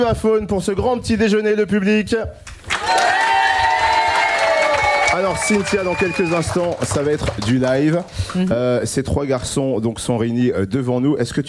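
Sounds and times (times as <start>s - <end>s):
speech: 0.0s - 3.2s, 5.2s - 11.4s
audience cheering: 2.7s - 7.6s
audience applause: 2.7s - 8.4s.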